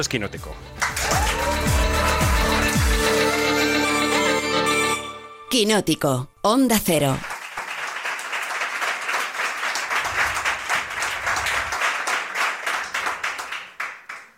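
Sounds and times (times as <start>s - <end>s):
speech: 0.0s - 1.6s, 5.5s - 7.3s
live audience applause: 0.8s - 4.2s, 7.3s - 14.3s.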